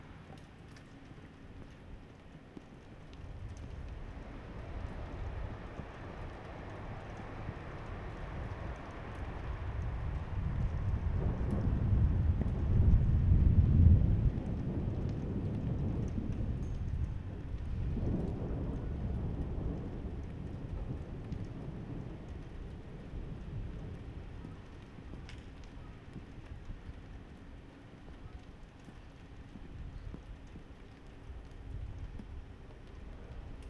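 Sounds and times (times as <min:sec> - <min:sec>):
thunder: 0:03.2 - 0:25.7.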